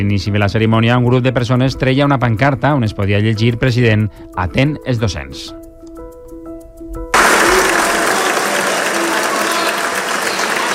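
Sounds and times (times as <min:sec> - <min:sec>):
speech: 0:00.0 - 0:05.6
audience applauding: 0:07.2 - 0:10.7.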